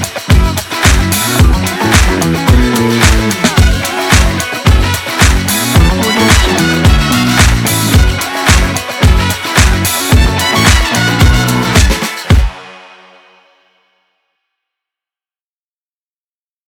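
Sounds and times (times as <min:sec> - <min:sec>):
upbeat funk music: 0:00.0 - 0:13.2.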